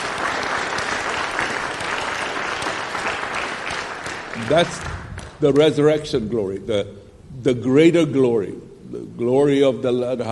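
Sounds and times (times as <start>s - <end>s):
audience clapping: 0.0s - 5.8s
speech: 4.4s - 10.2s.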